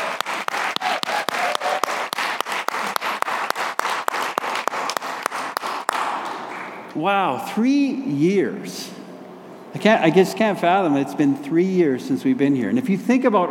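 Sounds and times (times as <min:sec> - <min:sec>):
audience clapping: 0:00.0 - 0:06.9
speech: 0:07.0 - 0:09.0, 0:09.7 - 0:13.4.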